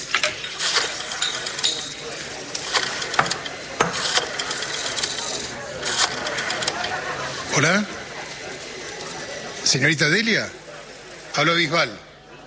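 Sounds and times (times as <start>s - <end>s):
rotary telephone dial turned: 0.0s - 7.1s
faint murmuring: 0.6s - 12.4s
speech: 7.6s - 8.0s, 9.7s - 10.6s, 11.4s - 12.1s.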